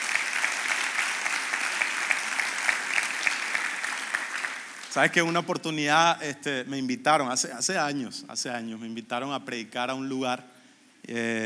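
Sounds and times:
audience applause: 0.0s - 5.4s
speech: 5.0s - 11.4s.

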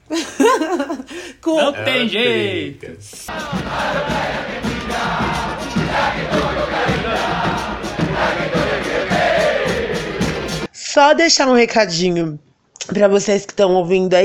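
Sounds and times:
laughter: 0.1s - 2.4s
speech: 1.4s - 6.5s, 11.0s - 14.2s
football fans chanting: 3.3s - 10.7s.

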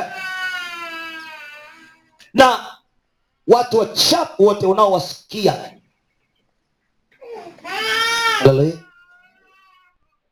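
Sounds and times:
baby whimpering and crying: 0.0s - 2.2s, 7.2s - 10.0s
speech: 2.3s - 2.7s, 3.5s - 5.8s, 8.4s - 8.9s.

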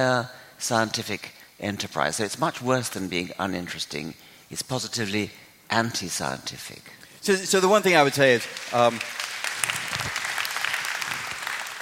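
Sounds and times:
speech: 0.0s - 9.8s
audience applause: 8.2s - 11.8s.

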